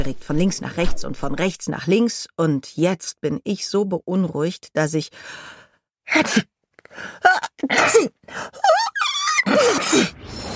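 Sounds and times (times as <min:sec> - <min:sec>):
speech: 0:00.0 - 0:10.5
person sneezing: 0:09.5 - 0:10.2.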